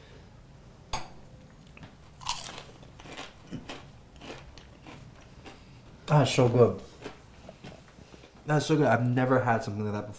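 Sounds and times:
chewing crunches: 0:01.6 - 0:08.4
crisp bite into fried beef dumplings with sugar on top: 0:01.7 - 0:07.8
speech: 0:06.1 - 0:06.9, 0:08.5 - 0:10.1.

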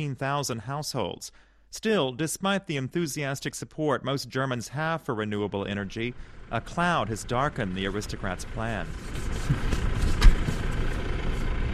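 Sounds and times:
speech: 0:00.0 - 0:09.7
tractor engine near Feldkirchen: 0:05.8 - 0:11.7
passing car near Feldkirchen: 0:06.1 - 0:11.7.

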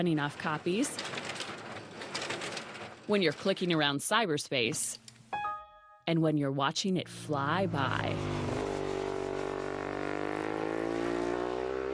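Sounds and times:
speech: 0:00.0 - 0:01.2, 0:03.1 - 0:05.0, 0:06.1 - 0:08.3
Ducati 1098R racing superbike engine screaming at high revs: 0:07.6 - 0:11.9.

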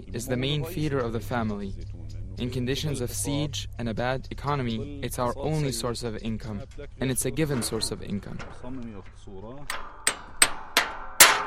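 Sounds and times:
speech: 0:00.1 - 0:09.9
hammer striking a metal tractor part: 0:06.4 - 0:11.4.

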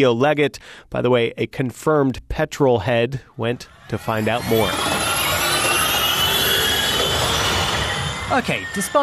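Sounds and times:
speech: 0:00.0 - 0:04.9, 0:08.3 - 0:09.0
Formula E electric race car at Donington Park circuit: 0:03.5 - 0:09.0.

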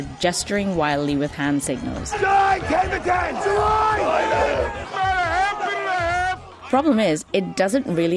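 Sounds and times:
speech: 0:00.0 - 0:05.2, 0:06.7 - 0:08.1
floor traders shouting over one another on a trading floor: 0:02.1 - 0:06.7.

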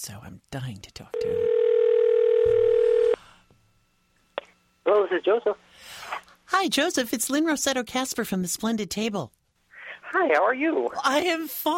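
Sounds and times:
speech: 0:00.0 - 0:01.6, 0:04.8 - 0:09.4, 0:10.1 - 0:11.7
faint low hum: 0:00.0 - 0:11.7
telephone dial tone as a call is placed: 0:01.2 - 0:03.2.

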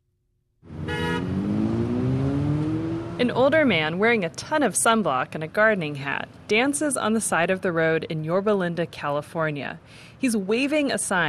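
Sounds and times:
cars zooming past on a roadside in Yorba Linda California: 0:00.6 - 0:03.9
car horn toot: 0:00.8 - 0:01.4
speech: 0:03.2 - 0:11.2.

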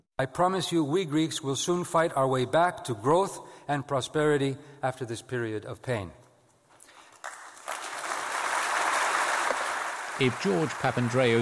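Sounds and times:
speech: 0:00.2 - 0:06.2, 0:10.2 - 0:11.4
audience applause after speech: 0:07.2 - 0:11.4.

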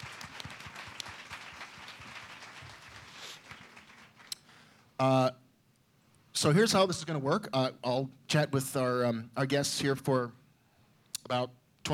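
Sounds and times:
crowd round of applause: 0:00.0 - 0:04.4
speech: 0:05.0 - 0:05.4, 0:06.4 - 0:10.4, 0:11.3 - 0:11.9.

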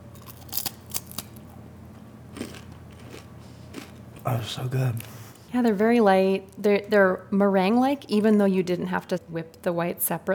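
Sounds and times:
soft hum: 0:00.0 - 0:10.3
light crisp cookie snapping apart: 0:00.2 - 0:01.4
speech: 0:04.3 - 0:10.3.

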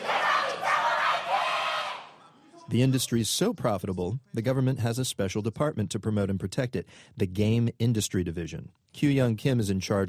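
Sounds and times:
fans cheering at a Korean video game competition: 0:00.0 - 0:02.3
speech: 0:02.7 - 0:10.0.

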